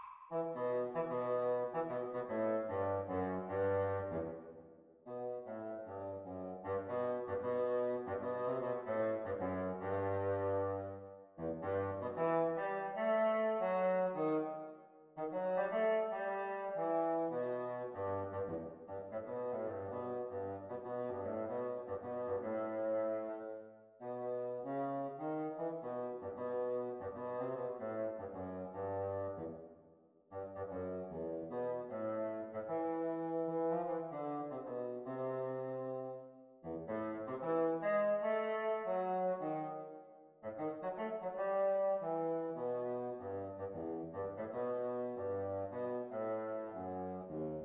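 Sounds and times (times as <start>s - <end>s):
bassoon duet: 0.4s - 4.4s, 5.1s - 29.6s, 30.4s - 47.6s.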